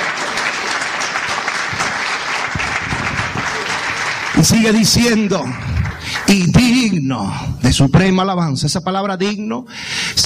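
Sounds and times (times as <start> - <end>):
church congregation applauding during an afternoon service: 0.0 - 7.0
speech: 4.4 - 10.2.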